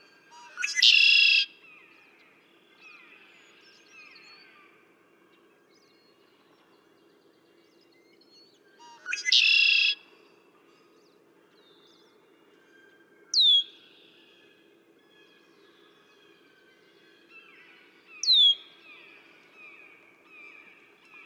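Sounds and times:
red-winged blackbird singing: 0:00.3 - 0:01.5, 0:13.4 - 0:13.9, 0:18.2 - 0:19.0.

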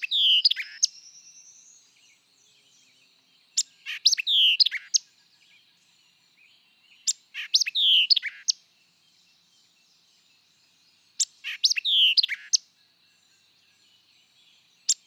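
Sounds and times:
white-eyed vireo song of sharp chips and slurred whistles: 0:00.0 - 0:02.0, 0:03.5 - 0:05.1, 0:07.0 - 0:08.6, 0:11.2 - 0:12.7, 0:14.2 - 0:15.0.

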